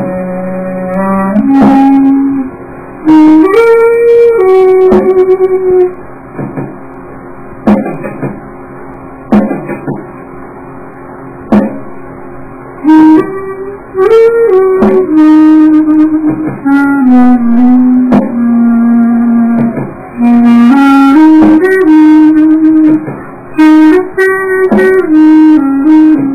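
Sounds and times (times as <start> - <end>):
soft saxophone: 0.0 - 6.1, 12.6 - 26.3.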